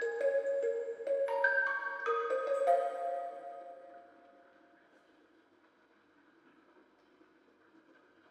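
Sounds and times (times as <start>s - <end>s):
music box at double time with reverb: 0.0s - 4.2s.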